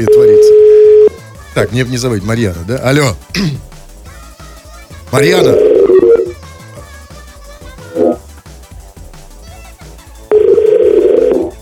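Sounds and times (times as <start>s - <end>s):
speech: 0.0s - 0.3s, 1.6s - 3.7s, 5.1s - 5.6s
telephone ringing tones while calling: 0.0s - 1.2s, 10.3s - 11.6s
faint rhythmic background: 0.0s - 11.6s.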